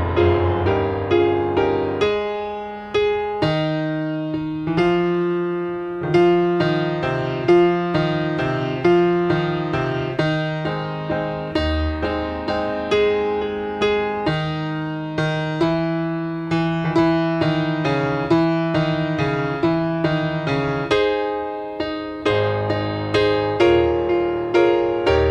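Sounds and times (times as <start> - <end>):
piano piece: 0.0 - 25.2.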